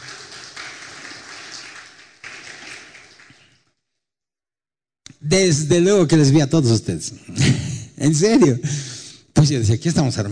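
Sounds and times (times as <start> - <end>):
audience applause: 0.0 - 3.6
speech: 5.2 - 7.4, 8.0 - 10.3.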